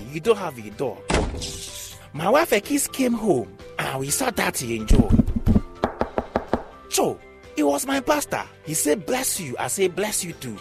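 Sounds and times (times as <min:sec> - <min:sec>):
speech: 0:00.1 - 0:05.3, 0:07.0 - 0:10.5
knock at the door: 0:05.8 - 0:06.8.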